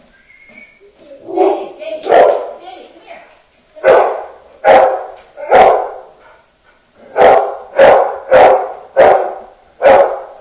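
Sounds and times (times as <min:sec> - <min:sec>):
dog barking at the door: 0:01.3 - 0:02.6, 0:03.8 - 0:06.4, 0:07.0 - 0:10.3.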